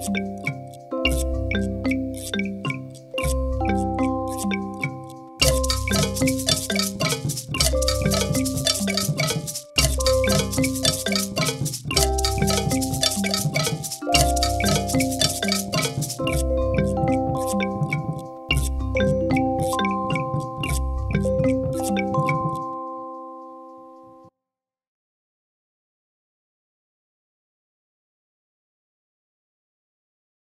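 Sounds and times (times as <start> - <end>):
4th grade instrumental mallet percussion: 0.0 - 23.9.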